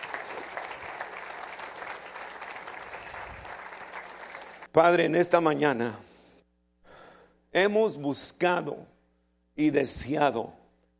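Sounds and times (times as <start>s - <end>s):
audience applauding: 0.0s - 4.7s
speech: 4.8s - 6.1s, 7.6s - 8.9s, 9.6s - 10.6s.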